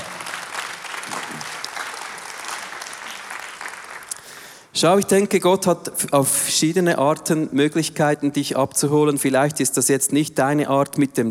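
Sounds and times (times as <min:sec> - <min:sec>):
audience applause: 0:00.0 - 0:04.6
speech: 0:04.8 - 0:11.2.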